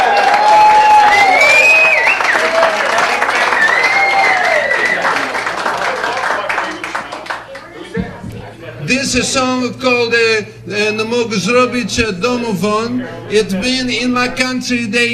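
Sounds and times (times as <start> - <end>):
audience hooting and hollering: 0.0 - 6.6
audience applause: 0.0 - 7.9
speech: 9.1 - 15.1.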